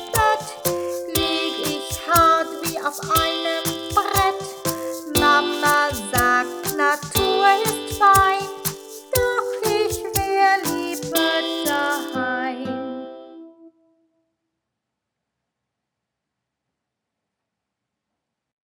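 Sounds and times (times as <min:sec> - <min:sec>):
singing: 0:00.0 - 0:12.6.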